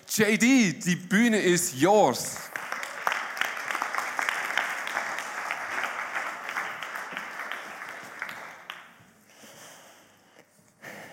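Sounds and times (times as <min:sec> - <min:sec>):
speech: 0:00.2 - 0:02.6
warm audience applause: 0:02.4 - 0:09.1.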